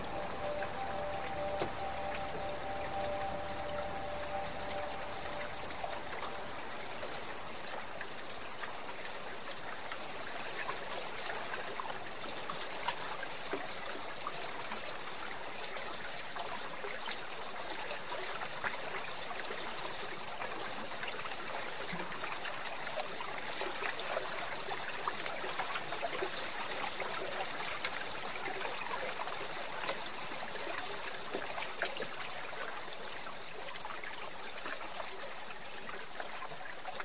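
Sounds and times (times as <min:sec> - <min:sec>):
faint tonal whine: 0:00.0 - 0:08.0
river water flowing: 0:00.0 - 0:37.0.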